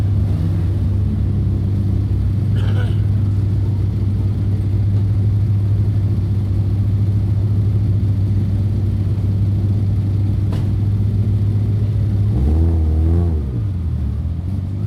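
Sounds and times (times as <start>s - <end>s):
car engine revving: 0.0s - 3.4s, 10.4s - 14.8s
car engines starting at la Piazza Piccola di Sassuolo: 0.0s - 14.8s.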